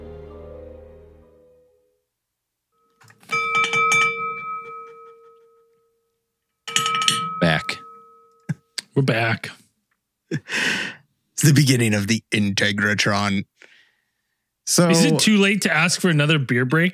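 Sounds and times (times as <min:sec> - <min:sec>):
glass being jiggled, clinking: 0:02.8 - 0:06.1, 0:06.7 - 0:08.7
speech: 0:09.0 - 0:09.6, 0:10.3 - 0:13.7, 0:14.7 - 0:16.9.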